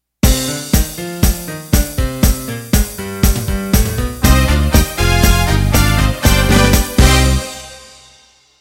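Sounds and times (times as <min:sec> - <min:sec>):
Motown music ending: 0:00.2 - 0:08.2.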